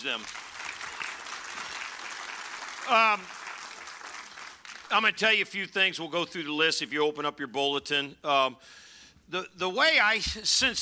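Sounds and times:
speech: 0.0s - 0.6s, 2.8s - 3.4s, 4.9s - 10.8s
audience applauding: 0.0s - 5.0s.

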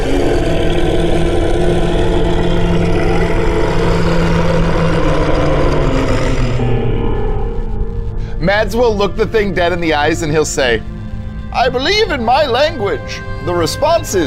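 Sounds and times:
monster's tremendous roar: 0.0s - 10.2s
speech: 8.5s - 10.9s, 11.6s - 14.2s.

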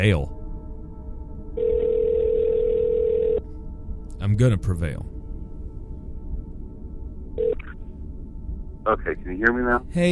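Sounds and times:
speech: 0.0s - 0.4s, 4.2s - 5.1s, 8.8s - 10.0s
faint low rumble: 0.0s - 10.0s
telephone dial tone: 1.6s - 3.4s.

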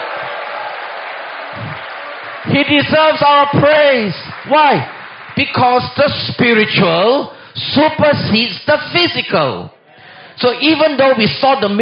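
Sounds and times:
audience clapping: 0.0s - 7.2s
speech: 2.6s - 9.8s, 10.4s - 11.7s.

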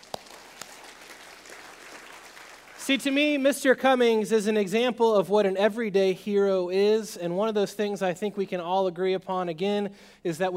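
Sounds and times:
soft audience clapping: 0.0s - 3.4s
speech: 2.9s - 10.5s.

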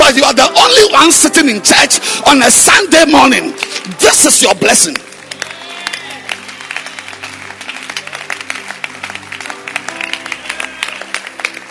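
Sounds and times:
speech: 0.1s - 5.1s
audience clapping: 3.5s - 11.7s.

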